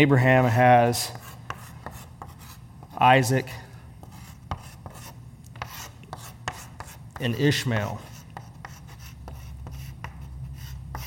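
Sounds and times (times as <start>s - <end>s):
speech: 0.0s - 1.3s, 3.0s - 3.6s, 7.2s - 8.1s
pen scratching in quick sloppy handwriting: 1.2s - 3.0s, 4.0s - 7.0s, 8.0s - 11.0s.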